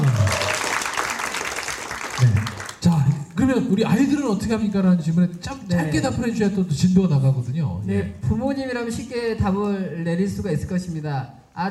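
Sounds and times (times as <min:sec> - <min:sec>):
audience applause: 0:00.0 - 0:02.9
speech: 0:03.5 - 0:11.6.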